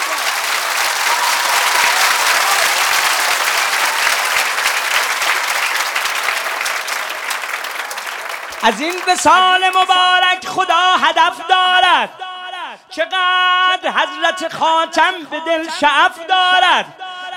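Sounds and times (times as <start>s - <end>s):
wedding guests clapping at a celebration: 0.0s - 10.3s
speech: 8.6s - 12.3s, 13.0s - 17.0s.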